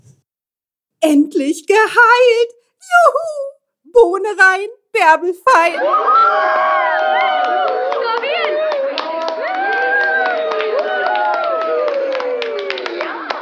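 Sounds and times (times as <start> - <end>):
speech: 1.0 - 8.3
crowd cheering and clapping: 5.8 - 13.4.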